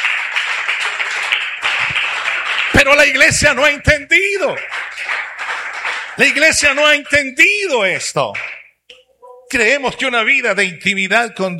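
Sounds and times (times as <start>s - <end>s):
church congregation applauding during a service: 0.0s - 8.7s
speech: 2.8s - 4.8s, 6.2s - 8.6s, 9.5s - 11.5s.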